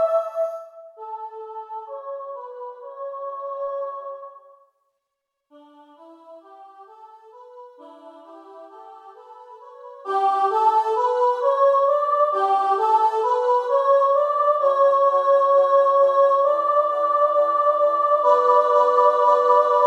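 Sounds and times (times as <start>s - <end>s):
emphasized soprano voice singing: 0.0s - 2.1s, 7.8s - 19.8s.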